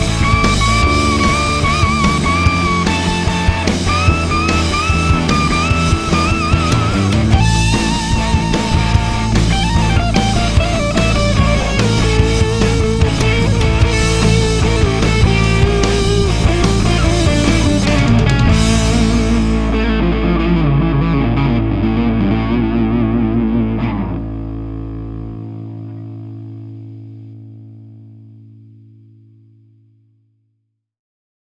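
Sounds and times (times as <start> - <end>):
guitar playing in phrygian dominant scale: 0.0 - 29.7.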